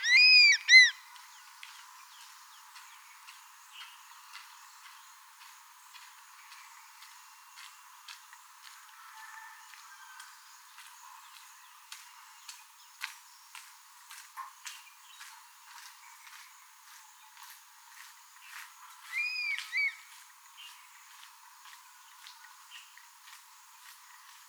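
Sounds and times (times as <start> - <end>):
crested serpent eagle whistled call: 0.0 - 1.0, 19.1 - 20.0.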